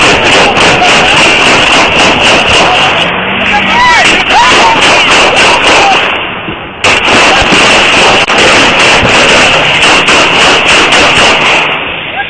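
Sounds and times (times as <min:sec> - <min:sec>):
rapid gunfire during a police stop: 0:00.0 - 0:03.0, 0:04.0 - 0:06.2, 0:06.8 - 0:11.9
voices: 0:00.0 - 0:07.6, 0:12.0 - 0:12.2.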